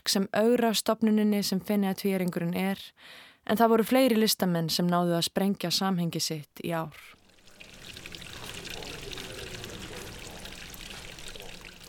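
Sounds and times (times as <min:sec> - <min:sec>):
speech: 0:00.1 - 0:07.2
water pouring through funnels in an art installation: 0:07.1 - 0:11.8.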